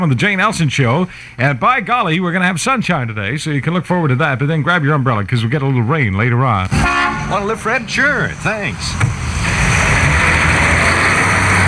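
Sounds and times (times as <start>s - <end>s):
speech: 0.0s - 9.5s
new leased car engine humming: 6.7s - 11.6s.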